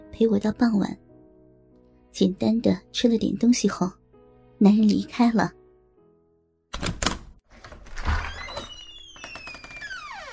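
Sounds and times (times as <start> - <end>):
speech: 0.2 - 1.0, 2.1 - 4.0, 4.6 - 5.6
key unlocking and opening a door: 6.7 - 9.9.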